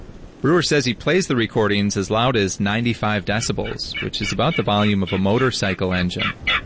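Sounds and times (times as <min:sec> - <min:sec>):
speech: 0:00.4 - 0:06.6
King Rail calls: 0:03.4 - 0:06.6.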